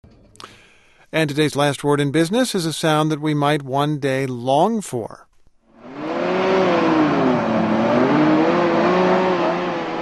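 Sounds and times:
speech: 1.1s - 5.3s
car engine: 5.7s - 10.0s.

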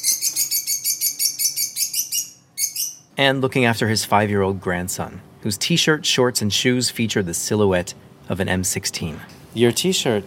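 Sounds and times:
parrot chirping: 0.0s - 3.2s
speech: 3.2s - 10.2s.

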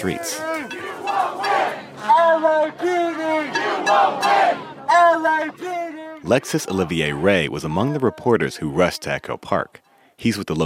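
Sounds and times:
speech: 0.0s - 0.5s, 6.3s - 10.6s
protest crowd shouting at police: 0.0s - 8.5s.

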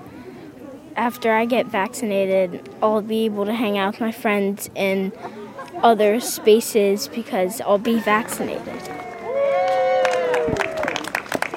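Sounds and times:
speech: 1.0s - 9.0s
scattered clapping for people leaving after getting vaccinated: 8.8s - 11.5s
person whooping for people leaving after getting vaccinated: 9.0s - 11.0s.

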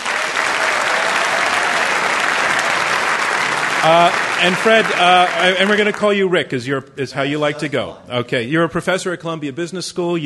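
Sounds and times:
audience applause greeting a debate team: 0.0s - 6.3s
speech: 3.8s - 10.2s.

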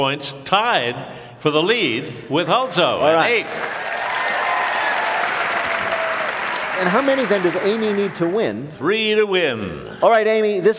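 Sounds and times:
speech: 0.0s - 3.9s, 6.8s - 10.7s
theater audience on Broadway applauding and cheering during a live quiz game: 3.2s - 8.8s.

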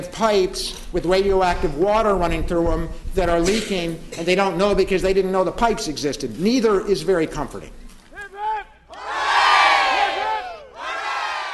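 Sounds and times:
speech: 0.0s - 7.8s
crowd cheering and shouting in celebration outdoors: 8.2s - 11.5s.

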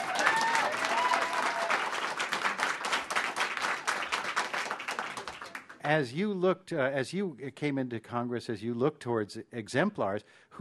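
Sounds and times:
audience applause: 0.0s - 5.8s
speech: 5.9s - 10.5s.

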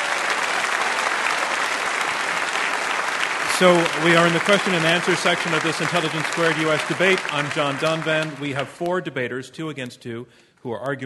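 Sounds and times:
audience round of applause: 0.0s - 8.8s
speech: 3.6s - 11.0s.

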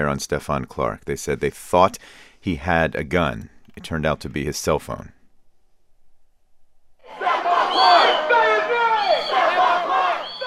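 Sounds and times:
speech: 0.0s - 5.2s
protest crowd shouting: 7.0s - 10.4s.

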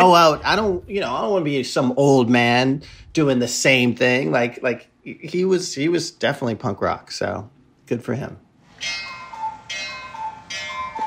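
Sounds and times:
speech: 0.0s - 9.1s
cuckoo clock calling in a house: 8.7s - 11.0s.

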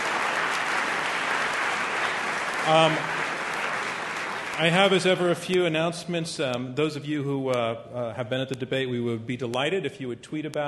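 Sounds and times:
audience applause: 0.0s - 5.8s
speech: 2.6s - 3.3s, 4.6s - 10.6s.

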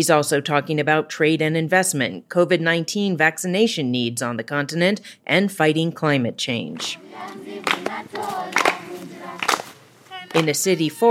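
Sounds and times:
speech: 0.0s - 8.6s, 10.3s - 11.0s
people clapping along in a city forest in Nairobi, Kenya: 6.8s - 10.8s
children singing in a city forest in Nairobi, Kenya: 6.8s - 11.0s.

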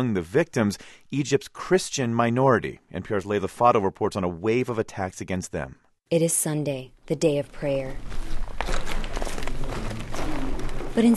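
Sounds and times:
speech: 0.0s - 8.9s, 11.0s - 11.1s
footsteps crunching on rubble in church remains: 8.0s - 11.1s.

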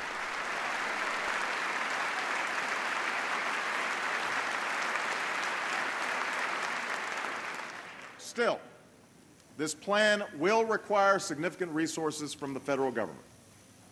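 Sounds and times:
audience applause: 0.0s - 8.2s
speech: 8.3s - 8.7s, 9.6s - 13.3s.

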